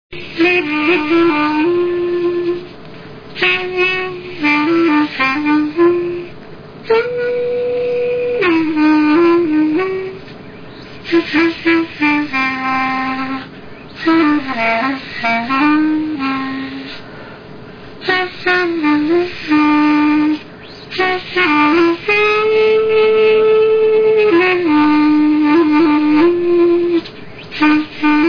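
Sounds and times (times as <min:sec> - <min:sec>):
blowing: 0:00.1 - 0:28.2.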